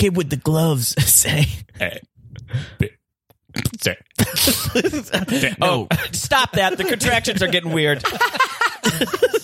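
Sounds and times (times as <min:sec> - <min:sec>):
speech: 0:00.0 - 0:02.9, 0:03.8 - 0:09.4
deep croaky burps: 0:02.8 - 0:04.1
laughter: 0:04.2 - 0:09.4.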